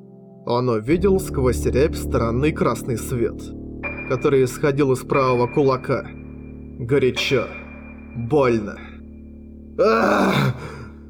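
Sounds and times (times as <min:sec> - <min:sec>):
speech: 0:00.4 - 0:06.2, 0:06.8 - 0:07.6, 0:08.2 - 0:08.8, 0:09.8 - 0:10.8
person screaming on waking: 0:09.8 - 0:10.9
person gasping for air: 0:09.8 - 0:11.0.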